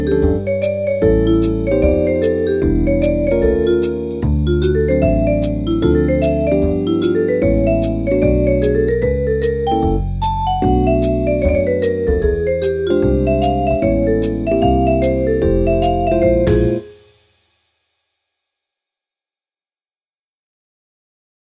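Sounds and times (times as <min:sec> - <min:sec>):
major key blues music: 0:00.0 - 0:16.8.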